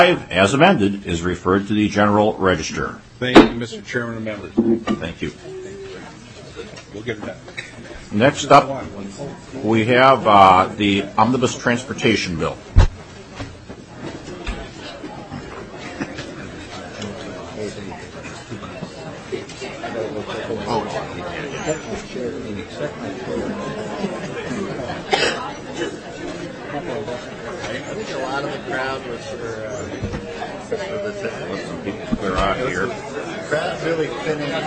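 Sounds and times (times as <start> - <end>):
speech: 0.0 - 5.6, 6.6 - 13.5, 28.4 - 34.6
crowd chattering while leaving a hearing room: 0.0 - 34.6.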